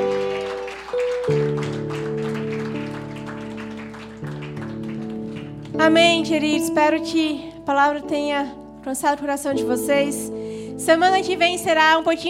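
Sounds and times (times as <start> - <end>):
audience applauding: 0.0 - 6.2
sustained keyboard chords: 0.0 - 12.2
speech: 5.8 - 12.2.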